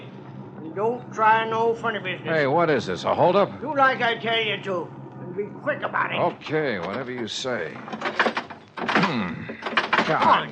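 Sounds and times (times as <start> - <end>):
speech: 0.8 - 10.4
stuck door knocking and rattling: 6.9 - 10.4.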